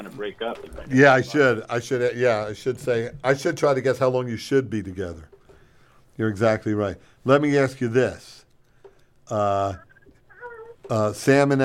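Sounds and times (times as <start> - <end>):
speech: 0.0 - 5.4, 6.2 - 8.4, 9.3 - 9.9, 10.9 - 11.6
baby crying in the background: 9.6 - 11.0.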